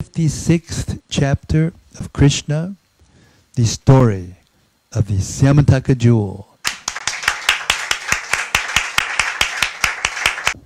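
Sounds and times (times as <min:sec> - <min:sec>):
speech: 0:00.0 - 0:02.8, 0:03.6 - 0:06.5
audience clapping: 0:06.6 - 0:10.6.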